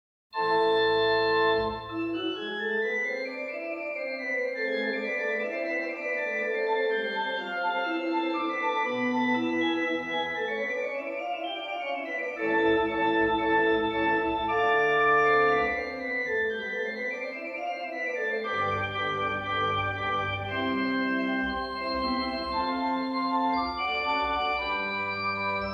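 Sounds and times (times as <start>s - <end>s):
classical prelude in A minor: 0.4s - 25.7s.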